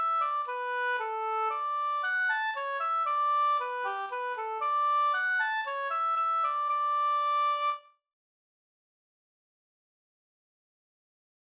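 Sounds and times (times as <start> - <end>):
slängpolska folk dance tune: 0.0 - 7.8.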